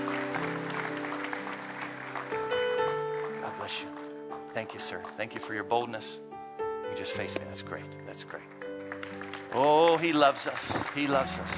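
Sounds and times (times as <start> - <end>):
crowd applauding: 0.0 - 5.2, 8.2 - 11.5
speech: 4.6 - 8.7, 9.5 - 11.5.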